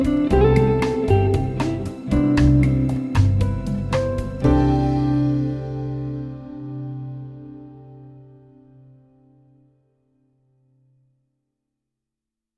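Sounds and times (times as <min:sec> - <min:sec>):
moody bossa nova: 0:00.0 - 0:08.2.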